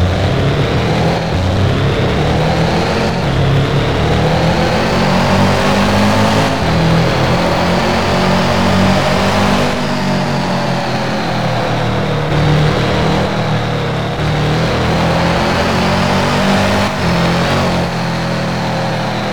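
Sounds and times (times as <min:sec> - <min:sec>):
Mitsubishi Lancer Evolution 10 car: 0:00.0 - 0:19.3.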